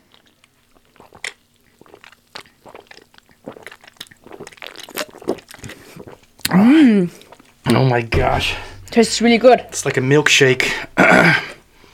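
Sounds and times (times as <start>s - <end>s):
biting and chewing strawberry-vanilla-chocolate and guava-dragon-fruit treats: 0.0s - 6.5s
speech: 6.5s - 11.5s.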